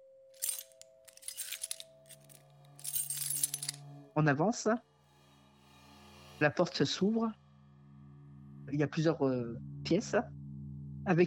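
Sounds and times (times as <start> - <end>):
keys jangling: 0.4 - 3.8
speech: 4.2 - 4.9, 6.4 - 7.4, 8.7 - 10.4, 11.1 - 11.2.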